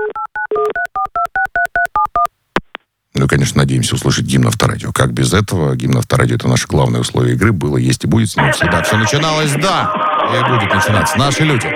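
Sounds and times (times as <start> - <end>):
touch-tone telephone dialing beeps: 0.0 - 2.3
speech: 3.2 - 11.7.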